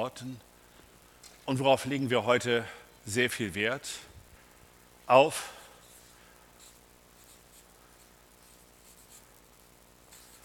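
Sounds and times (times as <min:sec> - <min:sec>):
speech: 0:00.0 - 0:00.5, 0:01.5 - 0:04.1, 0:05.1 - 0:05.6
pen scratching as someone writes by hand: 0:06.6 - 0:07.7, 0:08.4 - 0:09.2, 0:10.1 - 0:10.4.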